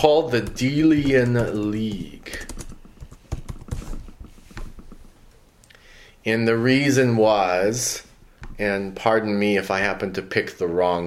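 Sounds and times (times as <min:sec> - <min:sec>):
speech: 0:00.0 - 0:02.4, 0:06.2 - 0:11.0
typing on a computer keyboard: 0:00.1 - 0:05.1.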